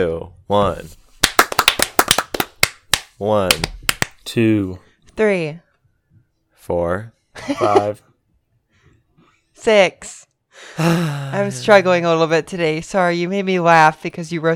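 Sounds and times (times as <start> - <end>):
speech: 0.0 - 1.0, 3.2 - 5.6, 6.6 - 8.1, 9.6 - 14.5
hand claps: 1.2 - 4.2.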